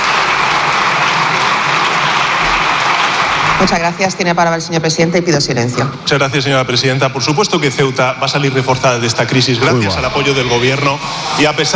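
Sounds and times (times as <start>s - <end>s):
parliament deputies applauding: 0.0s - 3.7s
speech: 3.6s - 11.7s.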